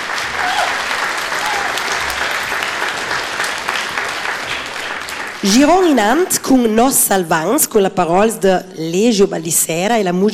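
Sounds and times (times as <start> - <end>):
audience applause: 0.0 - 6.4
speech: 5.4 - 10.3.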